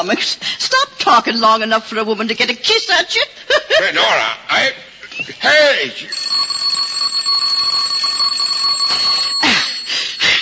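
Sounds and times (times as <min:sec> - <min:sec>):
speech: 0:00.0 - 0:06.4
doorbell ringing: 0:06.1 - 0:10.4.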